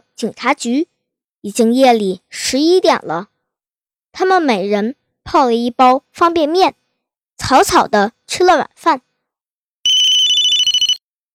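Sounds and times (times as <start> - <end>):
speech: 0.2 - 3.3, 4.2 - 6.8, 7.4 - 9.1
telephone ringing with electronic trill: 9.9 - 11.0.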